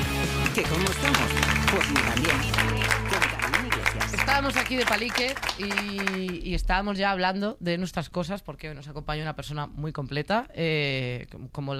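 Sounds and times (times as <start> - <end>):
audience applause greeting a guest: 0.4 - 6.4
speech: 0.6 - 3.2, 3.9 - 11.7.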